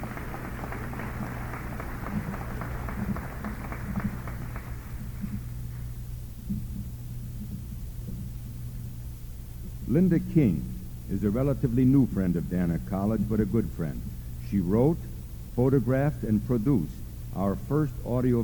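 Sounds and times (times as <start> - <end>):
audience applause: 0.0 - 5.5
speech: 9.9 - 18.4.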